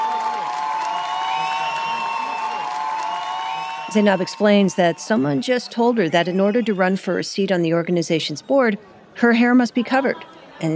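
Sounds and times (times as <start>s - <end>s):
crowd cheering: 0.0s - 7.2s
speech: 3.9s - 10.7s.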